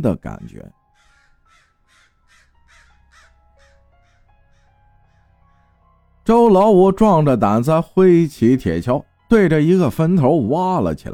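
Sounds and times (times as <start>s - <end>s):
speech: 0.0s - 0.8s, 6.3s - 11.1s
unknown birds shrieking mournfully: 0.9s - 6.1s.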